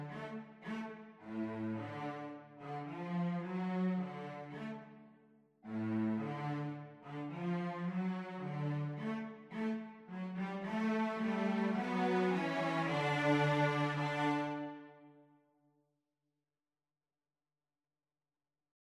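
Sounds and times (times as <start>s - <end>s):
cello duet: 0.0s - 5.0s, 5.6s - 15.1s.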